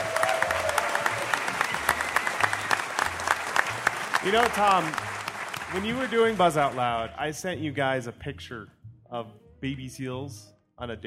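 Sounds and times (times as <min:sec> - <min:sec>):
audience applause: 0:00.0 - 0:07.1
speech: 0:04.2 - 0:05.1, 0:05.7 - 0:11.0.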